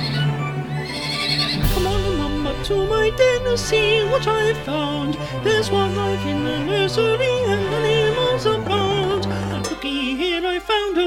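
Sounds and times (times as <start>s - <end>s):
pony neighing: 0.0s - 1.8s
speech: 2.7s - 11.0s.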